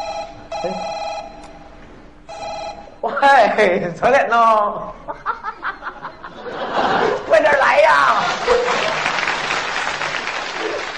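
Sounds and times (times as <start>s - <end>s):
telephone ringing: 0.0s - 1.5s, 2.3s - 3.0s
speech: 0.6s - 0.9s, 3.0s - 5.3s, 7.3s - 9.0s
laughter: 5.0s - 10.9s.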